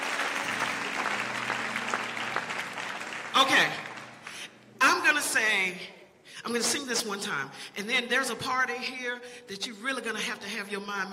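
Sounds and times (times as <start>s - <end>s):
audience applause for the band: 0.0s - 4.5s
speech: 3.4s - 3.8s, 5.1s - 11.1s.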